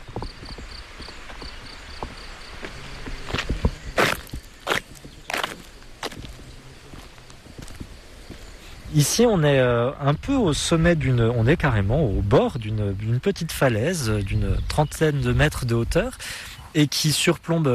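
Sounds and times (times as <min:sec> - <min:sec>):
footsteps climbing a cliff above a bridge over the river Cure at Vézelay: 0:00.0 - 0:09.4
insects chirping: 0:00.0 - 0:17.7
speech: 0:09.0 - 0:17.7.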